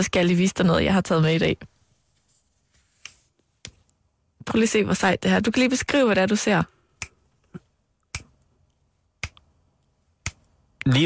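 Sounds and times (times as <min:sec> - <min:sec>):
speech: 0:00.0 - 0:01.7, 0:04.4 - 0:06.8, 0:10.8 - 0:11.0
rhythmic finger snapping: 0:08.0 - 0:08.4, 0:09.2 - 0:09.5, 0:10.2 - 0:10.9.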